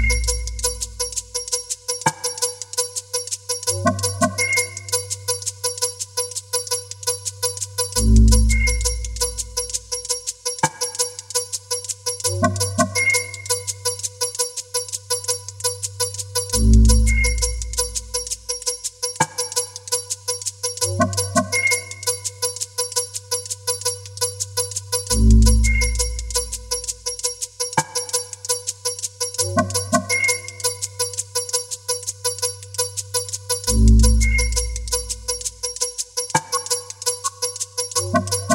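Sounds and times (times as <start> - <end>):
bells: 0.0 - 5.9, 6.6 - 14.5, 16.0 - 19.7, 23.7 - 28.4, 29.2 - 38.5
whistles: 4.4 - 5.2, 8.4 - 9.3, 12.9 - 13.8, 17.1 - 17.7, 21.5 - 22.4, 25.5 - 26.5, 30.1 - 30.9, 34.2 - 35.0, 36.4 - 37.6.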